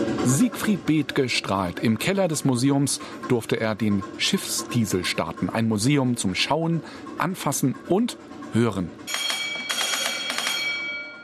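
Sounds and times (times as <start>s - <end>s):
speech: 0.2s - 9.3s
ship engine-order telegraph bell ringing: 9.1s - 11.2s.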